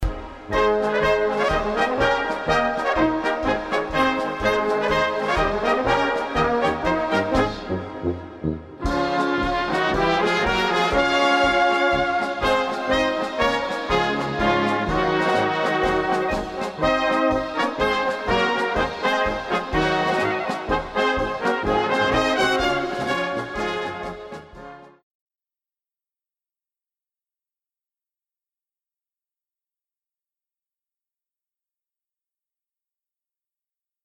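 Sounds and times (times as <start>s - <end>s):
polka music: 0.0s - 25.0s.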